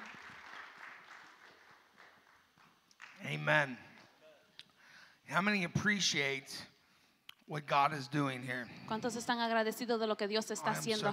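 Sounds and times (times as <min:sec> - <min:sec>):
audience applauding: 0:00.0 - 0:03.7
speech: 0:03.3 - 0:03.9, 0:05.3 - 0:06.7, 0:07.5 - 0:11.1.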